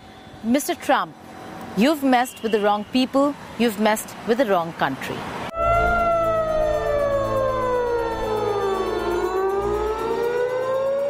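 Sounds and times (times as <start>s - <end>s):
speech: 0.4s - 1.2s, 1.8s - 5.4s
low rumbling: 5.5s - 9.9s
sirens wailing across a city: 5.5s - 11.0s.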